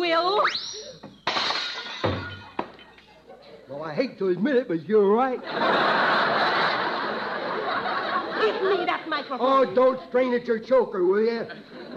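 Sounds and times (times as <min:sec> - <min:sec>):
dishes smashing as a tablecloth is yanked: 0:01.0 - 0:03.1
rattling clattering dish debris: 0:01.1 - 0:03.1
speech: 0:03.9 - 0:06.1, 0:08.6 - 0:11.8
laughter: 0:05.1 - 0:11.9.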